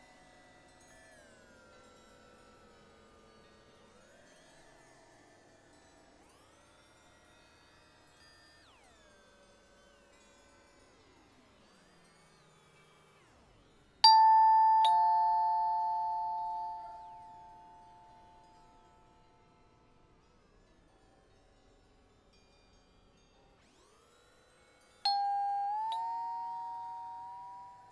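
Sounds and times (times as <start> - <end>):
rubber bells: 14.1 - 17.9, 25.1 - 27.8.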